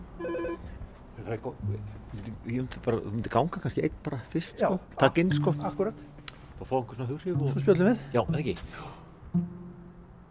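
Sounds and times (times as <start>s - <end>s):
doorbell ringing: 0.2s - 0.6s
speech: 1.2s - 9.6s.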